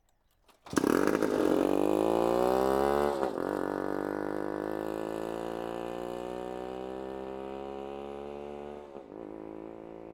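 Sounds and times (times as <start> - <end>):
motorbike starting and leaving: 0.5 - 10.1.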